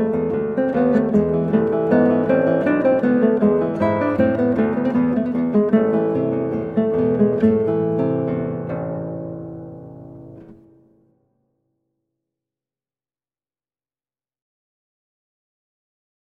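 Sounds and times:
allemande in A minor on guitar: 0.0s - 11.4s.

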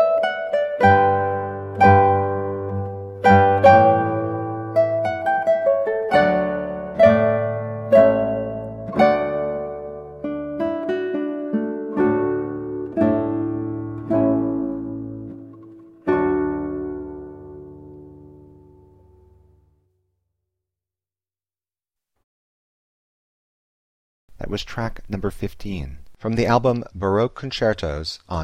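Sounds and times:
eight-string guitar playing an adagio: 0.0s - 19.9s
person speaking: 24.3s - 28.4s.

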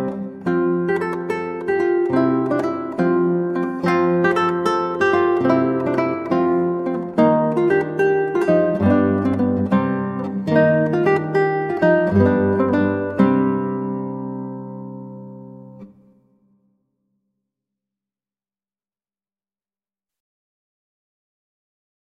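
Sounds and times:
8-string guitar: 0.0s - 16.6s.

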